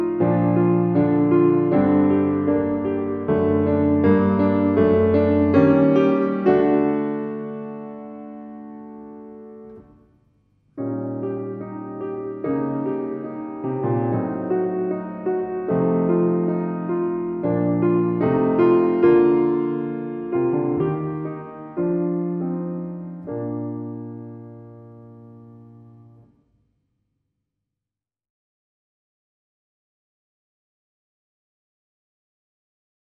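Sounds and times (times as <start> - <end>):
solo piano: 0.0 - 26.4.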